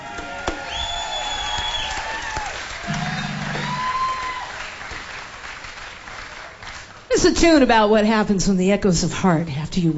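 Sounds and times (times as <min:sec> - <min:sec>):
cheers and whistles: 0:00.0 - 0:04.7
audience applause: 0:00.0 - 0:07.1
speech: 0:07.2 - 0:09.9.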